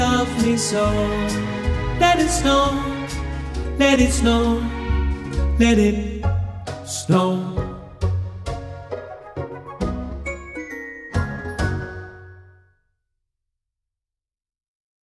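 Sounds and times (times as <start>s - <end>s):
tenor singing: 0.0s - 8.0s.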